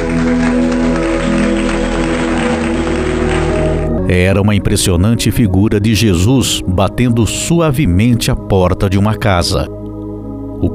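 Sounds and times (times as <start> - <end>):
warm applause at painting unveiling: 0.0 - 4.1
speech: 4.1 - 9.8.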